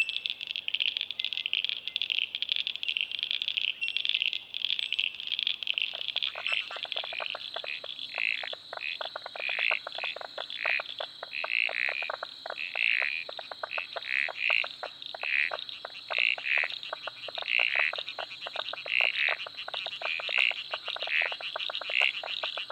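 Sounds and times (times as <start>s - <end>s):
frog calls in short bright pulses: 0.0s - 22.7s.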